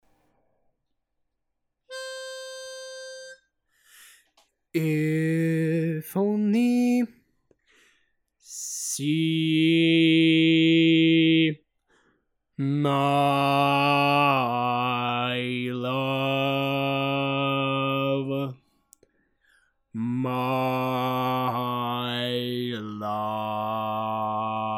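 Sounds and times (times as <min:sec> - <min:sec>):
barbershop bass singing tags: 0:04.8 - 0:07.2, 0:08.7 - 0:11.6, 0:12.6 - 0:18.6, 0:20.0 - 0:24.7.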